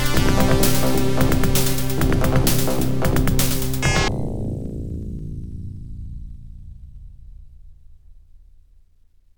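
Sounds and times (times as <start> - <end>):
OPL2 FM synth chip music: 0.0 - 4.1.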